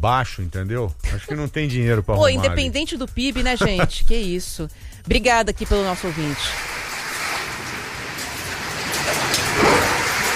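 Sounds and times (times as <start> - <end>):
speech: 0.0 - 6.7
laughter: 1.1 - 4.2
rain falling steadily in a big city: 6.0 - 10.3.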